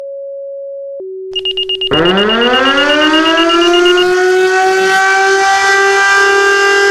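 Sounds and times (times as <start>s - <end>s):
paging siren: 1.4s - 6.8s.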